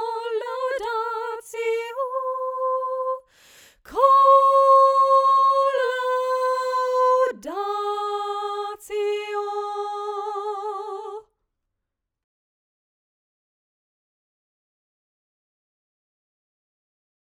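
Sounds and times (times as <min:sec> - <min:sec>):
soprano singing: 0:00.0 - 0:03.3, 0:03.9 - 0:11.3.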